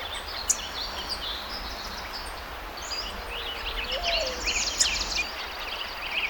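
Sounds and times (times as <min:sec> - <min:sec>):
ambience in Sonoma: 0:00.0 - 0:06.2.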